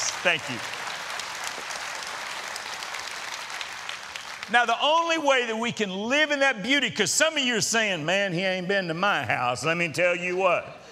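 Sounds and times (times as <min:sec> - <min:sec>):
audience applause: 0:00.0 - 0:04.8
speech: 0:00.2 - 0:00.8, 0:04.5 - 0:10.8.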